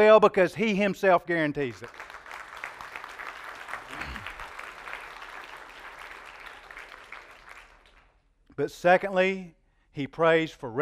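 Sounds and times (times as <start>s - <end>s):
speech: 0.0s - 2.1s, 8.6s - 10.8s
people clapping: 1.7s - 8.2s.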